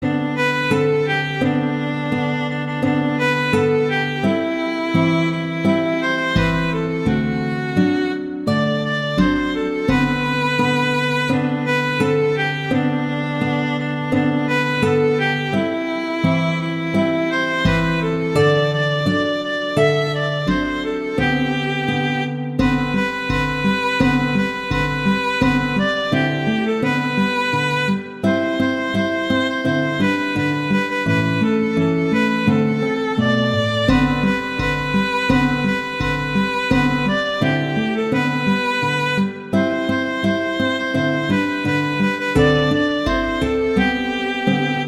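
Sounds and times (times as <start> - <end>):
Christmas song: 0.0 - 44.8.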